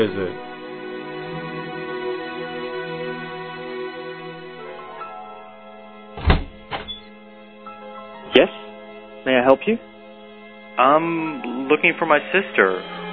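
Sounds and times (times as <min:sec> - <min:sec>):
speech: 0:00.0 - 0:00.5, 0:09.2 - 0:09.9, 0:10.8 - 0:13.0
heavy wooden door opening thunk: 0:06.2 - 0:07.2.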